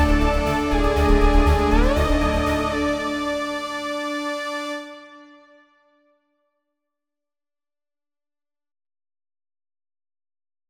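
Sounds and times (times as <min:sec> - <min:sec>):
synth sci-fi horror classical music: 0:00.0 - 0:05.1.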